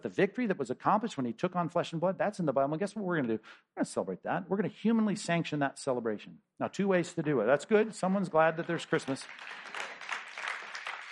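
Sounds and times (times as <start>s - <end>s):
speech: 0.0s - 9.9s
audience clapping: 8.0s - 11.0s.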